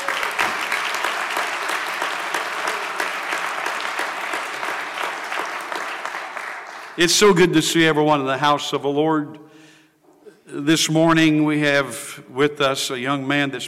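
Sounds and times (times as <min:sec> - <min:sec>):
audience clapping: 0:00.0 - 0:07.6
speech: 0:07.0 - 0:09.5, 0:10.5 - 0:13.6.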